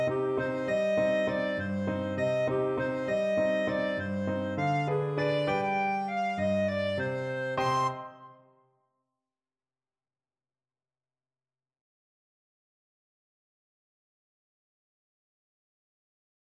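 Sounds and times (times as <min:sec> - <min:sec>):
clarinet in Buenos Aires: 0:00.0 - 0:08.5.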